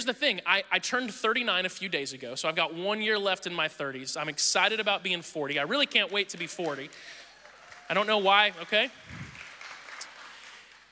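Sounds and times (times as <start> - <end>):
speech: 0.0 - 7.2, 7.9 - 9.2
audience clapping: 5.9 - 10.8.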